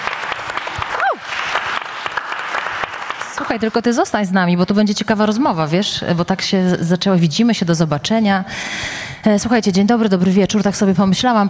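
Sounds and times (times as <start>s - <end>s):
audience applause: 0.0s - 3.8s
speech: 3.4s - 11.4s.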